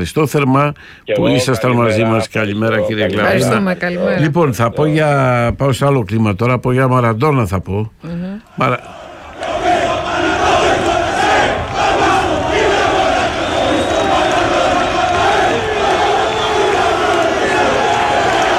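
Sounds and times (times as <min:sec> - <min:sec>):
speech: 0:00.0 - 0:09.0
stadium crowd chanting a player's name: 0:08.5 - 0:18.5.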